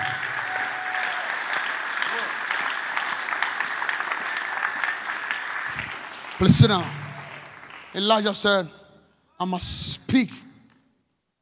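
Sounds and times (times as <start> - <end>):
audience clapping: 0.0 - 8.6
speech: 6.4 - 7.0, 7.9 - 8.8, 9.4 - 10.4.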